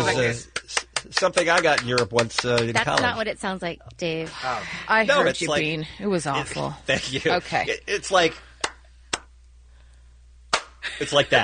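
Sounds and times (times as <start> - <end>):
speech: 0.2 - 8.5, 10.9 - 11.4
Viking clap: 0.4 - 3.2, 8.6 - 9.3, 10.5 - 10.8.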